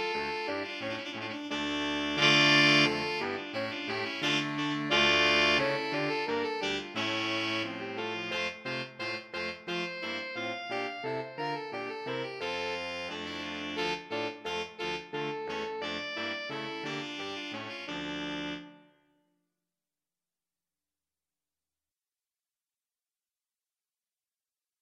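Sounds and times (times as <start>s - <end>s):
saxophone quartet playing a dance: 0.0s - 11.3s, 12.1s - 18.8s.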